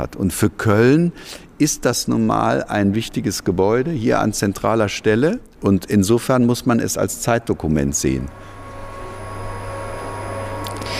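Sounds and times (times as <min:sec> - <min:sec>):
speech: 0:00.0 - 0:08.6
vacuum cleaner running: 0:07.9 - 0:10.9.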